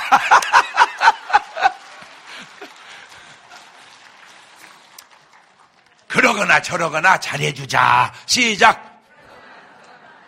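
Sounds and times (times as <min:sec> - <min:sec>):
people laughing: 0:00.0 - 0:04.0, 0:09.0 - 0:10.2
speech: 0:00.1 - 0:00.6, 0:06.3 - 0:08.8.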